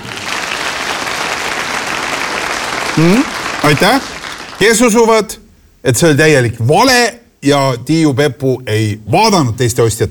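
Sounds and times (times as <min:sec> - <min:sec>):
audience applause: 0:00.0 - 0:04.8
speech: 0:03.0 - 0:10.0.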